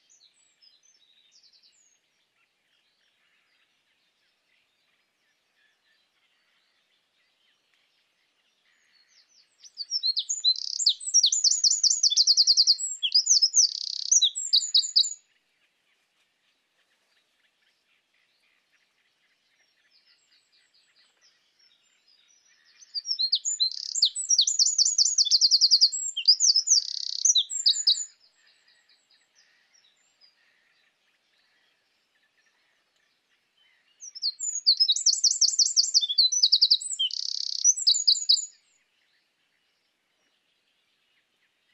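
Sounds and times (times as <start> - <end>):
Eurasian wren singing: 9.5 - 15.2, 22.8 - 28.2, 34.0 - 38.6.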